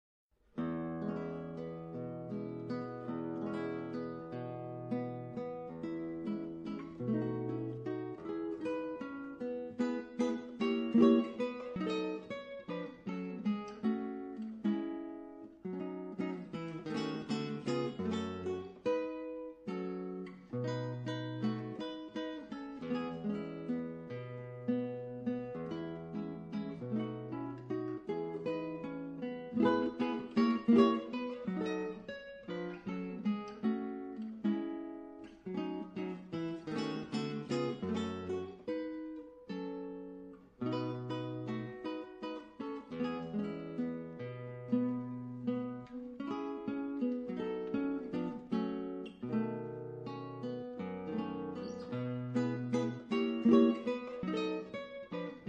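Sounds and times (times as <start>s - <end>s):
guitar playing Mexican folk songs: 0.5s - 55.4s.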